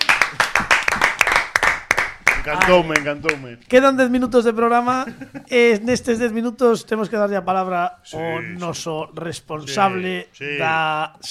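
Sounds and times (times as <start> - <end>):
audience applause for a guest on a television program: 0.0 - 3.4
speech: 2.4 - 11.2.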